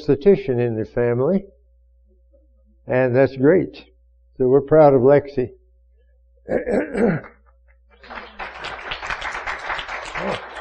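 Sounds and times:
speech: 0:00.0 - 0:01.6, 0:02.9 - 0:05.6, 0:06.4 - 0:07.4
audience applause: 0:08.0 - 0:10.5.

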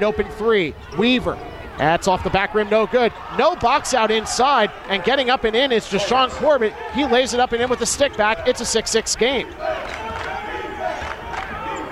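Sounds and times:
speech: 0:00.0 - 0:10.0
crowd noise: 0:00.0 - 0:11.8
scattered voices: 0:00.0 - 0:11.8
college basketball bench chanting defense and clapping: 0:09.5 - 0:11.8.

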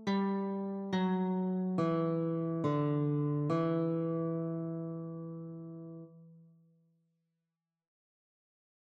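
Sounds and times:
guitar notes: 0:00.0 - 0:06.5.

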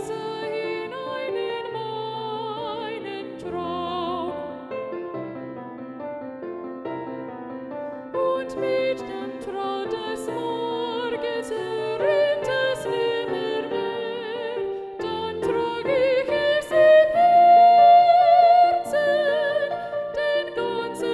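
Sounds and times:
soprano and alto choir singing: 0:00.0 - 0:04.9, 0:08.1 - 0:21.1.

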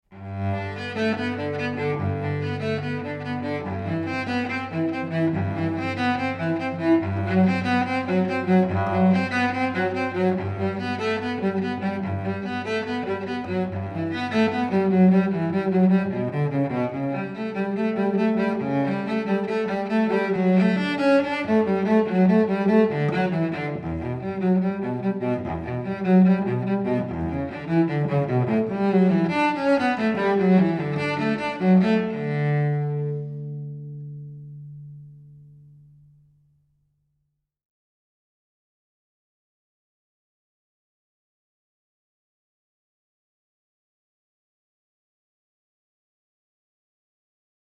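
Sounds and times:
cello suite: 0:00.0 - 0:36.3.

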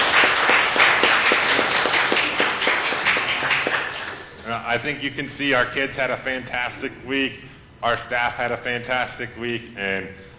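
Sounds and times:
audience applause: 0:00.0 - 0:04.4
speech: 0:04.7 - 0:10.2.

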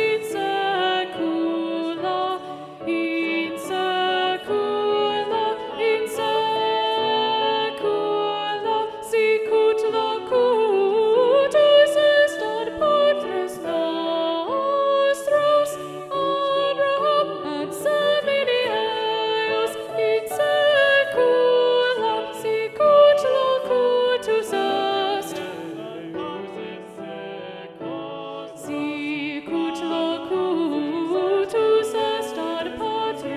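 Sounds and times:
SATB choir singing with alto predominant: 0:00.0 - 0:33.3.

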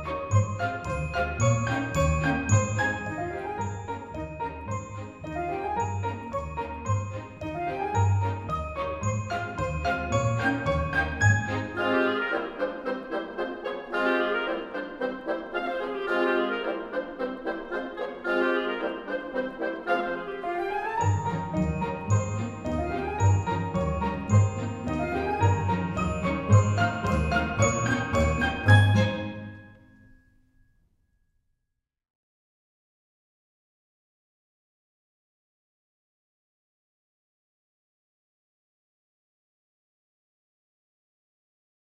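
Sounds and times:
exam music: 0:00.0 - 0:29.8.

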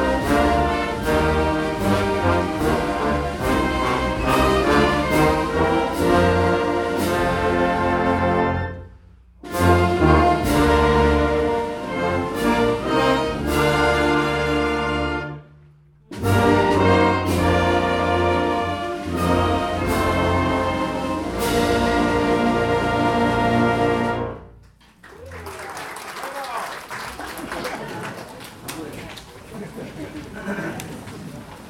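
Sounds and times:
national anthem music: 0:00.0 - 0:24.7
laughter: 0:25.1 - 0:31.6.

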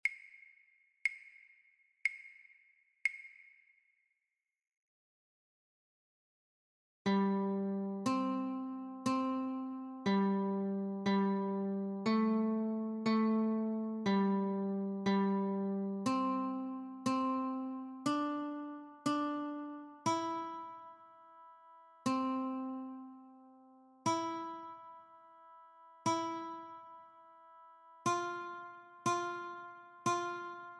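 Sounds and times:
guitar notes: 0:07.1 - 0:30.7.

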